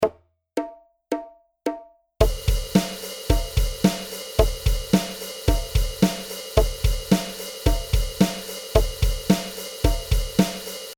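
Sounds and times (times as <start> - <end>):
groove music: 2.2 - 10.9.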